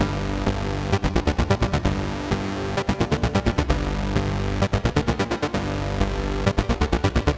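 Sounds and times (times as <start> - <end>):
trance synth loop: 0.0 - 7.3.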